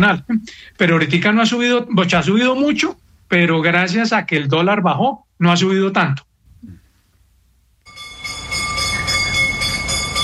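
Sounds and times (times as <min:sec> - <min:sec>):
speech: 0:00.0 - 0:06.8
bell ringing: 0:07.9 - 0:10.2.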